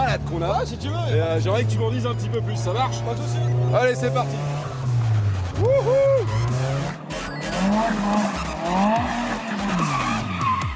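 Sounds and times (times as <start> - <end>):
roaring car engine drone: 0.0 - 10.7
speech: 0.1 - 4.7, 5.6 - 6.6, 7.7 - 9.2
car tires skidding and squealing: 2.5 - 10.7.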